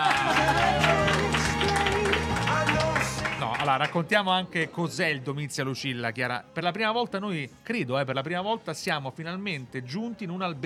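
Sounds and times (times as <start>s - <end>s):
audience applause: 0.0s - 4.0s
speech: 3.7s - 10.6s.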